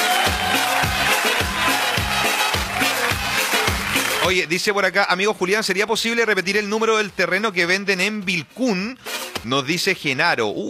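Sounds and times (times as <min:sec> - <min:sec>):
applause sound effect: 0:00.0 - 0:05.0
speech: 0:04.3 - 0:10.6.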